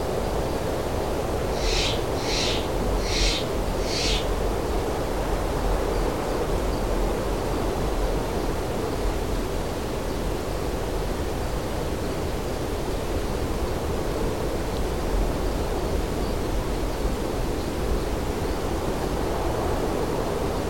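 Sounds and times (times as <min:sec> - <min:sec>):
light cold wind: 0:00.0 - 0:20.6
birds in cold weather: 0:01.5 - 0:04.5.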